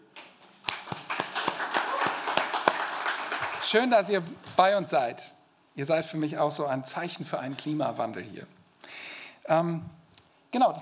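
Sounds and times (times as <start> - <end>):
audience applause: 0.6 - 4.3
speech: 3.7 - 8.6, 9.5 - 10.8.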